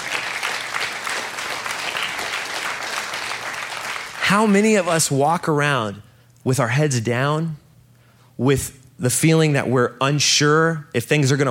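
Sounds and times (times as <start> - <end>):
large audience applause: 0.0 - 4.5
speech: 4.3 - 7.6, 8.4 - 11.4.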